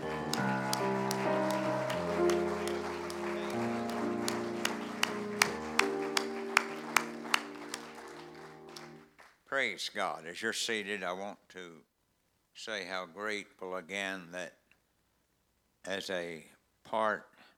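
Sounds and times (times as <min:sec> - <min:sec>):
audience clapping hands: 0:00.0 - 0:09.5
speech: 0:09.6 - 0:11.9, 0:12.6 - 0:14.6, 0:15.8 - 0:17.3.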